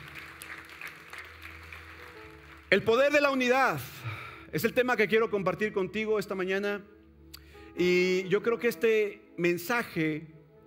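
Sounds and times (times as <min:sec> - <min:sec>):
audience applause: 0:00.0 - 0:03.0
speech: 0:02.7 - 0:03.9, 0:04.5 - 0:06.9, 0:07.8 - 0:10.4.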